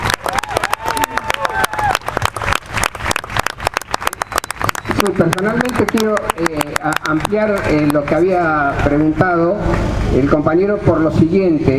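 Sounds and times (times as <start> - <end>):
audience applause: 0.0 - 8.2
speech: 5.0 - 11.7.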